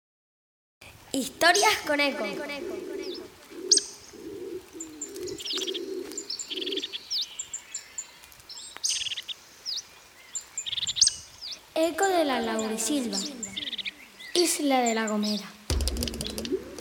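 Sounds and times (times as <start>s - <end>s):
small birds chirping and twittering: 0.8s - 16.7s
speech: 1.1s - 3.0s, 11.8s - 13.4s, 14.4s - 15.6s
Bolle's laurel pigeon cooing: 1.4s - 7.1s, 15.7s - 16.7s.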